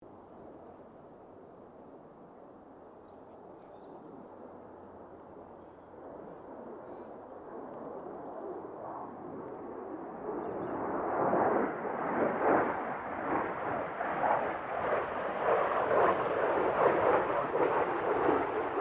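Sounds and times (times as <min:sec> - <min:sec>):
CA-27 Sabre jet aircraft passing: 0:03.9 - 0:18.7.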